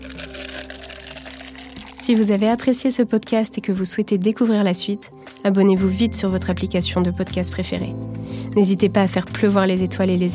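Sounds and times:
coffee pouring into a cup: 0.0s - 2.6s
speech: 2.1s - 10.3s.

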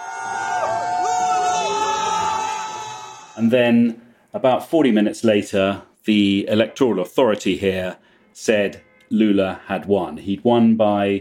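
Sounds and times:
crowd cheering across a city: 0.0s - 3.5s
sustained high shouts: 0.0s - 3.5s
speech: 3.4s - 11.2s.

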